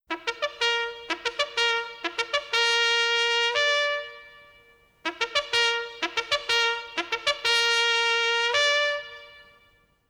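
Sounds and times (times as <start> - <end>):
jägarhorn hunting horn playing entry signal: 0.1 - 9.9.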